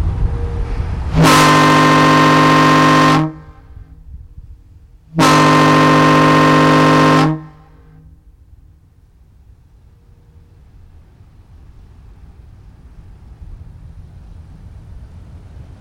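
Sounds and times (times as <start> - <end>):
foghorn: 0.1 - 4.1, 5.1 - 8.4.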